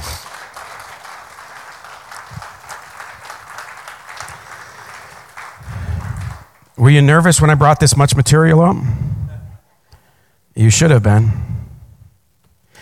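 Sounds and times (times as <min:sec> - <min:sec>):
audience hand clapping: 0:00.0 - 0:06.8
speech: 0:06.8 - 0:09.1, 0:10.6 - 0:11.5.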